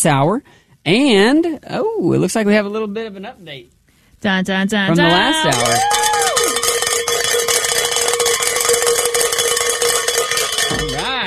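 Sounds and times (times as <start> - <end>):
speech: 0.0 - 6.1
bell ringing: 4.9 - 11.2.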